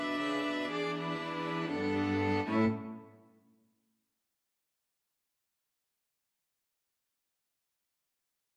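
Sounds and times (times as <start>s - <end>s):
string quartet: 0.0s - 3.3s.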